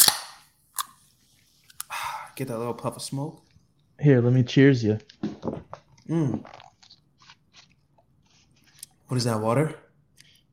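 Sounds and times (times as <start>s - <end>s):
hard seltzer can cracking open: 0.0s - 1.0s
speech: 2.4s - 5.1s, 6.1s - 6.6s, 9.1s - 9.8s.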